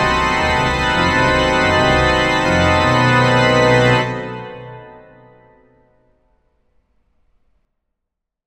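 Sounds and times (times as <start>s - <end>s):
dramatic epic organ music: 0.0s - 5.5s.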